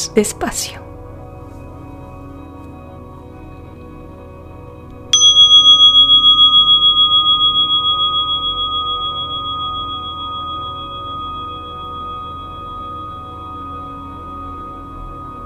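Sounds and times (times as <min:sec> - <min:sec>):
speech: 0:00.0 - 0:00.9
meditation bell ringing: 0:05.1 - 0:15.4.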